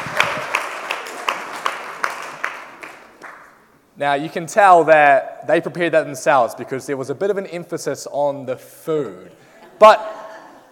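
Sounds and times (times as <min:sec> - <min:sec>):
audience round of applause: 0:00.0 - 0:03.5
speech: 0:04.0 - 0:10.2.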